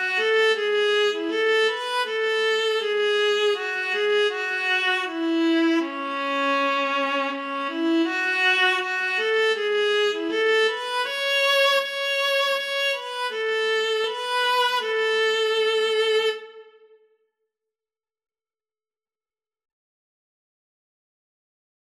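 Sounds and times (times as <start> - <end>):
viola and cello duet: 0.0 - 16.5.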